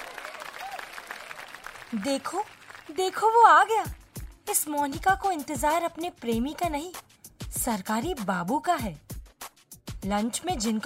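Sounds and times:
audience clapping: 0:00.0 - 0:04.4
speech: 0:01.9 - 0:09.0, 0:10.0 - 0:10.8.

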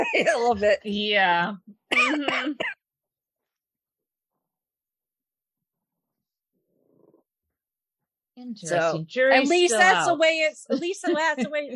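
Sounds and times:
harsh cough and throat clearing: 0:00.0 - 0:00.5, 0:01.9 - 0:02.9
speech: 0:00.0 - 0:02.8, 0:08.4 - 0:11.7.

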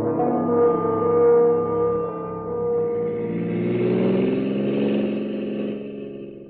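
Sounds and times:
car engine humming while driving to the airport: 0:00.1 - 0:06.4.

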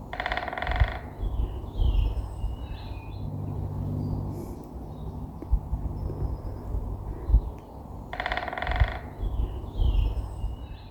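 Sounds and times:
great spotted woodpecker drumming: 0:00.0 - 0:01.6, 0:08.1 - 0:10.1
low steady rumble of outdoor noise: 0:00.0 - 0:10.8.

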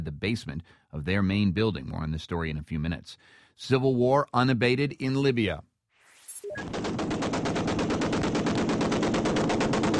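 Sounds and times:
speech: 0:00.0 - 0:05.7, 0:06.5 - 0:07.1
automatic gunfire as rebel fighters come under fire near Brega, Libya: 0:06.6 - 0:09.9.

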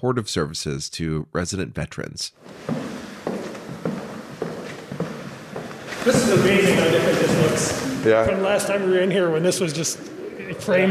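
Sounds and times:
speech: 0:00.0 - 0:03.4, 0:06.0 - 0:10.8
footsteps walking through a building: 0:02.4 - 0:08.1.

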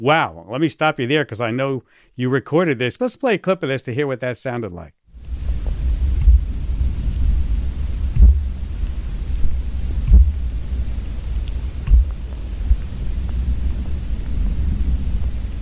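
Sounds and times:
speech: 0:00.0 - 0:05.0
soft hiss: 0:05.1 - 0:15.5
steady deep rumble: 0:05.2 - 0:15.5
thumps from banging on a tree carried through the ground: 0:05.4 - 0:06.6, 0:08.1 - 0:14.5.

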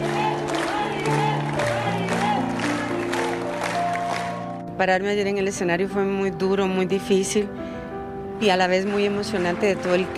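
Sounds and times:
crowd applauding and cheering: 0:00.0 - 0:04.6
speech: 0:04.8 - 0:07.6, 0:08.4 - 0:10.1.

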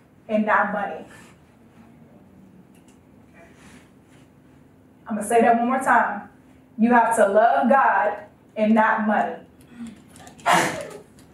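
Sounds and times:
speech: 0:00.3 - 0:01.3, 0:05.1 - 0:10.7
person sneezing: 0:09.8 - 0:11.0.

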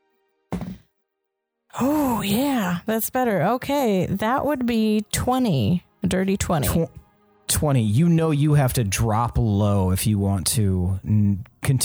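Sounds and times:
dice being rolled on a table: 0:00.5 - 0:00.8
speech: 0:01.8 - 0:07.0, 0:07.6 - 0:11.8.

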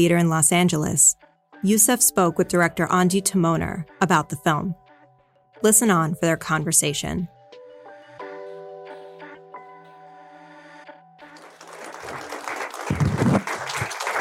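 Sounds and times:
speech: 0:00.0 - 0:04.8, 0:05.6 - 0:07.4
audience applause: 0:11.3 - 0:14.2.

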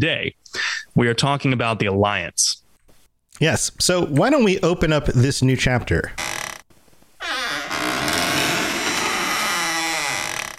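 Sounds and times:
speech: 0:00.0 - 0:02.6, 0:03.4 - 0:06.3
squeaky door opening: 0:06.2 - 0:06.6, 0:07.2 - 0:10.5.

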